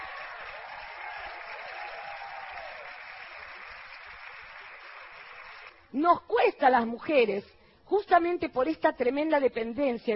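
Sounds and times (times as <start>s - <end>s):
applause: 0.0s - 5.9s
speech: 5.9s - 10.1s.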